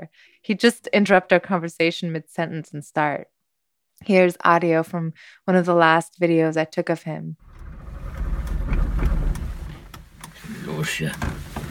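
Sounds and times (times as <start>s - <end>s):
speech: 0.0s - 3.3s, 4.0s - 7.4s, 10.8s - 11.5s
old East German car engine starting: 7.4s - 11.6s.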